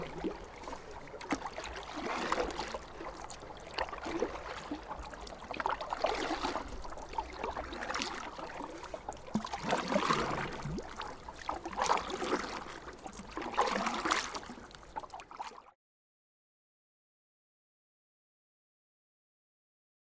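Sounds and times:
rowing with oars: 0.0s - 15.6s.

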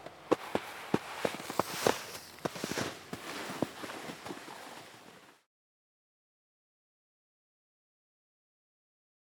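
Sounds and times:
snowboard riding and jumps: 0.0s - 5.5s.

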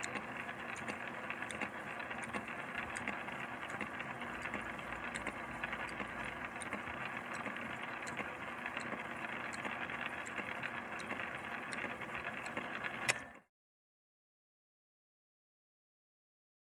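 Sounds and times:
lathe: 0.0s - 13.2s.

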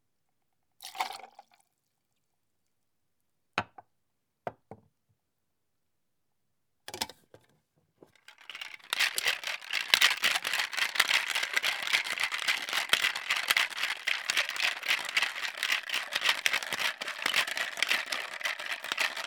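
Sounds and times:
cocktail shaker making a cocktail: 8.3s - 19.2s.

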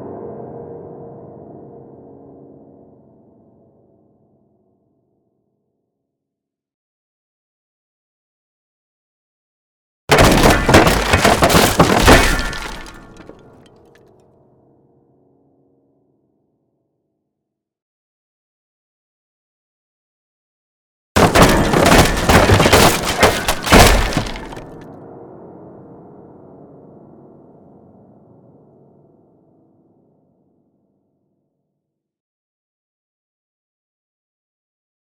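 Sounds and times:
grand piano being smashed: 10.1s - 13.7s, 21.2s - 24.8s.

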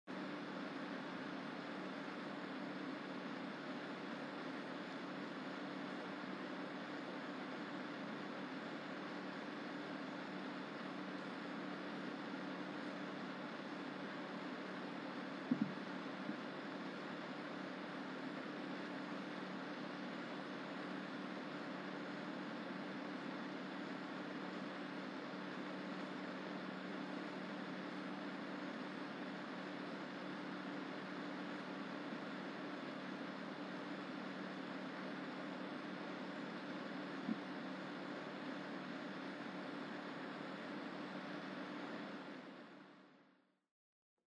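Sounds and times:
computer system unit cooler fan: 0.1s - 43.2s.

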